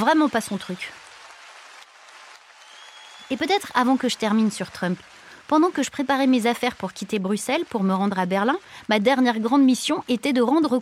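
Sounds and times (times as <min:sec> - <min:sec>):
speech: 0:00.0 - 0:01.0, 0:03.3 - 0:10.8
assembly applauding: 0:00.0 - 0:08.1.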